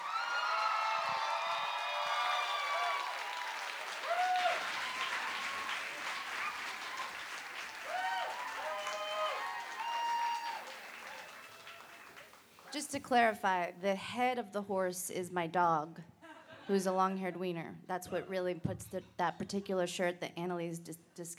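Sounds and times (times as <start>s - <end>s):
whoops and cheers: 0.0s - 12.3s
audience applause welcoming performer: 0.0s - 12.9s
speech: 12.8s - 16.1s, 16.7s - 21.3s.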